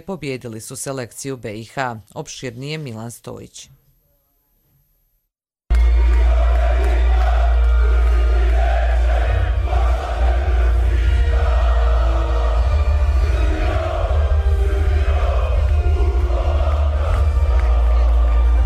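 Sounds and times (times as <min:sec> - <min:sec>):
speech: 0:00.0 - 0:03.8
hostile basketball crowd chanting in unison: 0:05.7 - 0:18.6.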